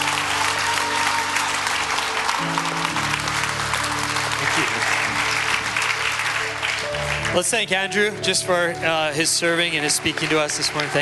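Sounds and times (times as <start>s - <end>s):
audience clapping: 0.0s - 11.0s
speech: 7.4s - 11.0s.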